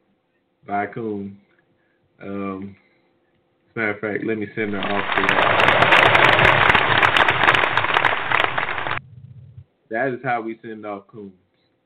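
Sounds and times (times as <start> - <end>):
speech: 0.6 - 1.4, 2.2 - 2.8, 3.8 - 7.0, 9.9 - 11.4
crowd clapping: 4.6 - 9.0.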